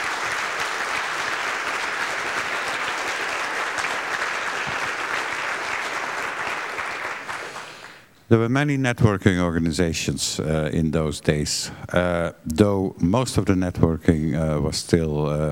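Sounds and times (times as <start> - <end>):
audience applause: 0.0 - 8.0
speech: 8.3 - 15.5.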